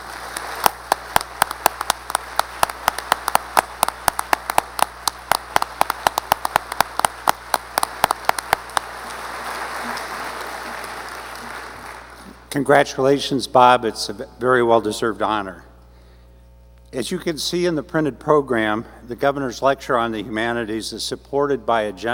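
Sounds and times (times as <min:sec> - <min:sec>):
audience applause: 0:00.0 - 0:12.5
speech: 0:12.6 - 0:15.7, 0:16.9 - 0:22.1.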